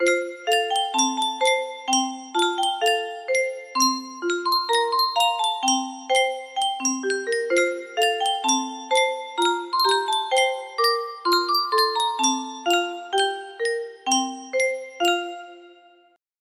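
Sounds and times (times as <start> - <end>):
Yunsheng music box tune: 0.0 - 16.0.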